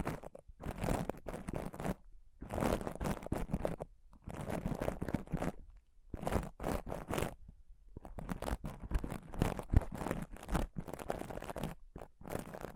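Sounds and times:
intense scratching and touching on a microphone: 0:00.0 - 0:07.4, 0:08.0 - 0:12.7.

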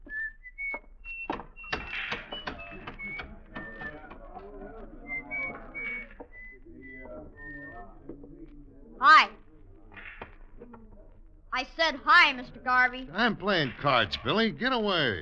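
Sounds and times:
man whistling a tune while walking: 0:00.0 - 0:08.1
speech: 0:11.8 - 0:15.2.

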